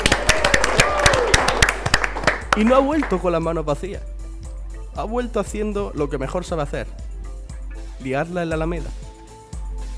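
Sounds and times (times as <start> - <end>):
audience applause: 0.0 - 3.1
speech: 2.6 - 4.1, 5.0 - 7.0, 8.0 - 9.0.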